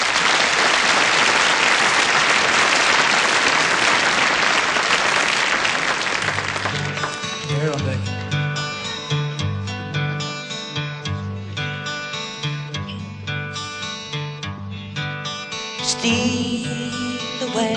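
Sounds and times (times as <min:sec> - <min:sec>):
audience applause for an orchestra and a singer: 0:00.0 - 0:08.0
music: 0:05.8 - 0:17.7.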